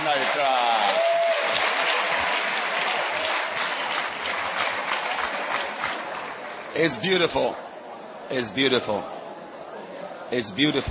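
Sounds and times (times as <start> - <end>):
audience clapping: 0.0 - 7.3
speech: 6.8 - 7.7, 8.3 - 9.2, 10.3 - 10.8.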